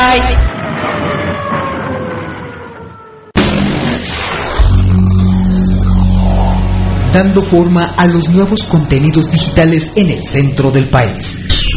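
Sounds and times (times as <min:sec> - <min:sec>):
police patrol car siren: 0:00.0 - 0:03.4, 0:04.4 - 0:09.5
speech: 0:00.2 - 0:00.4, 0:07.2 - 0:11.6.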